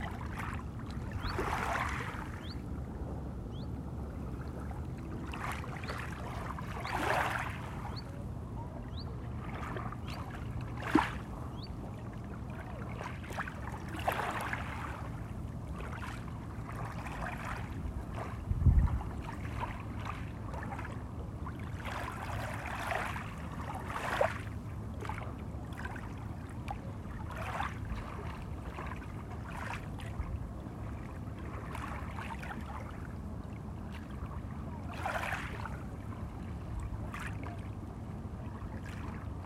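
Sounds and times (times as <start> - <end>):
water flowing slowly: 0.0 - 39.4
birds: 1.1 - 2.7, 3.5 - 3.8, 5.8 - 12.4.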